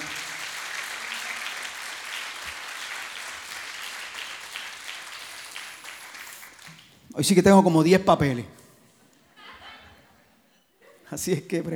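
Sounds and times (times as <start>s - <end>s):
audience applauding loudly: 0.0s - 6.8s
speech: 7.2s - 8.6s, 11.2s - 11.7s
laughter: 8.8s - 11.4s.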